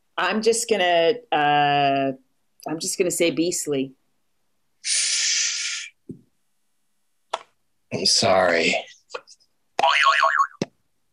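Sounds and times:
speech: 0.2 - 4.0, 8.0 - 9.2
springy cartoon boing sound effect: 9.8 - 10.6.

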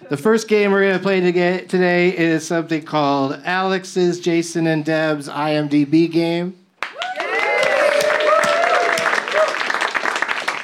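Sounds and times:
speech: 0.1 - 6.6
audience clapping: 6.8 - 10.6.

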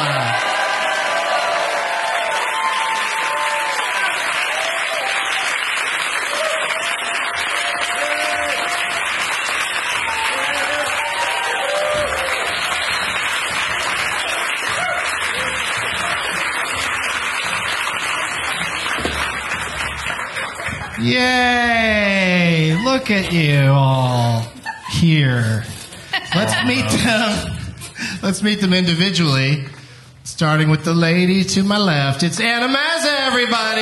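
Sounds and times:
studio audience applause welcoming guests onto a show: 0.0 - 23.9
laughter: 20.2 - 28.1
speech: 23.0 - 25.7, 26.3 - 27.5, 28.2 - 29.7, 30.4 - 33.7.

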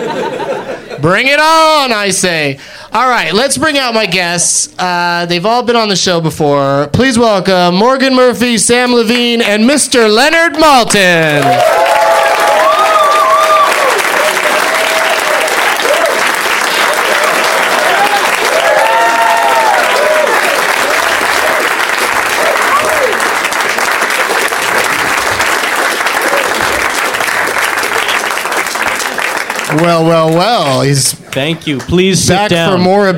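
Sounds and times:
laughter: 0.0 - 1.1
speech: 1.0 - 12.0, 29.8 - 33.1
audience applause: 11.3 - 30.9
whoops and cheers: 11.4 - 16.3, 16.9 - 21.7, 22.3 - 23.2.

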